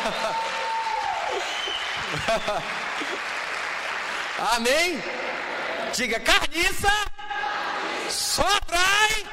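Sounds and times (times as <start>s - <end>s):
laughter: 0.0s - 0.5s, 1.3s - 3.4s
audience clapping: 0.0s - 6.0s
speech: 2.3s - 3.3s, 4.4s - 7.1s, 8.1s - 9.2s.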